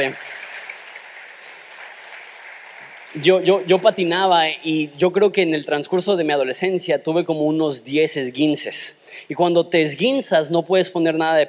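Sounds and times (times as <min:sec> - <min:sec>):
speech: 0:00.0 - 0:00.4, 0:03.1 - 0:11.4
audience applause: 0:00.0 - 0:04.1.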